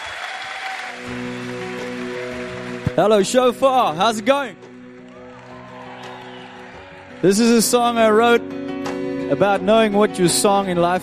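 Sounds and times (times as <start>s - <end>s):
audience applause for a guest performer at a faith gathering: 0.0s - 8.0s
speech: 3.0s - 4.6s, 7.2s - 8.6s, 9.3s - 11.0s.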